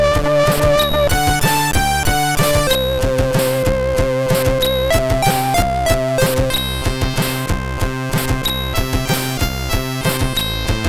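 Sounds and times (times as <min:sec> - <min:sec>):
waltz on a SID MOS6581R3 sound chip: 0:00.0 - 0:10.8.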